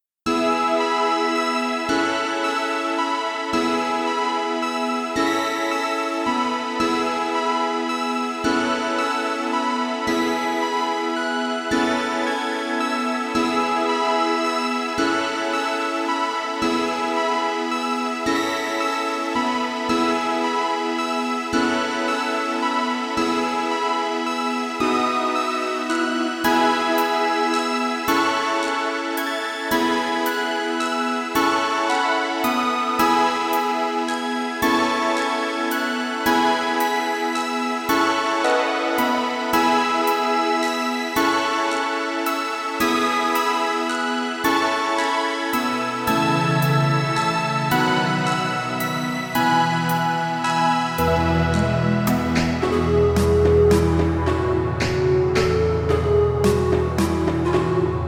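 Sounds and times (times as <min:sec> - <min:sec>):
ambient music: 0:00.3 - 0:58.0.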